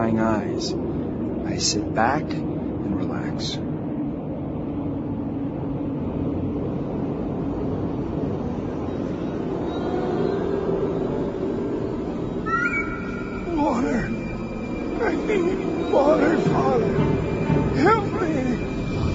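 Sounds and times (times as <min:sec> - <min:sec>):
engine hum inside airplane nose: 0:00.0 - 0:19.1
speech: 0:00.1 - 0:03.7
high wavering cry: 0:08.8 - 0:19.1.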